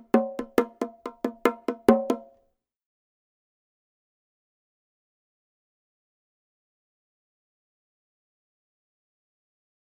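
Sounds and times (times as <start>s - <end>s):
bongos playing martillo pattern: 0.0s - 2.3s.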